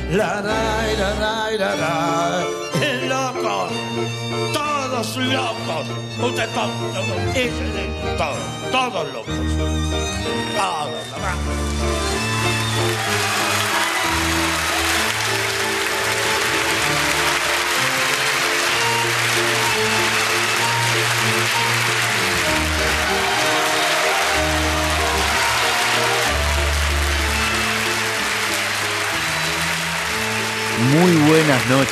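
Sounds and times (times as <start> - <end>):
speech: 0.1 - 2.5, 3.4 - 13.7, 30.8 - 31.8
audience applause at a night show of songs and poetry: 11.3 - 31.8.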